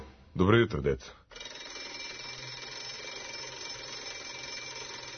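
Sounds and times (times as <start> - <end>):
speech: 0.4 - 1.3
school bell ringing: 1.3 - 5.1.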